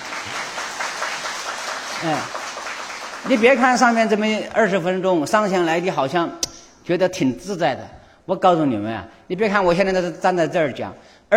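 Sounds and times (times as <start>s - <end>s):
audience applause: 0.0s - 4.3s
speech: 2.0s - 2.4s, 3.2s - 11.3s.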